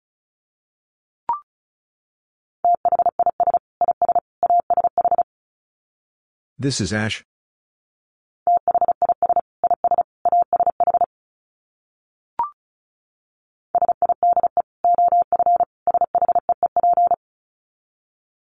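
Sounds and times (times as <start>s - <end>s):
Morse code tones at 35 wpm: 2.7s - 5.2s, 8.5s - 11.1s, 13.8s - 17.2s
speech: 6.6s - 7.3s.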